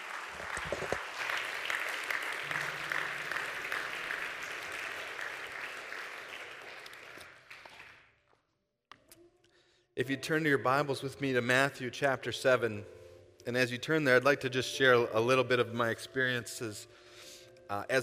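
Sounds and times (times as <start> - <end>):
audience clapping: 0.0 - 8.1
speech: 10.0 - 17.0, 17.7 - 18.0.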